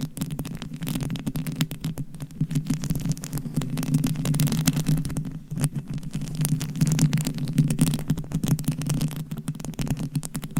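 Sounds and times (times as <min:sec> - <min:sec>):
scratching and tapping on a homemade mic cover: 0:00.0 - 0:10.5.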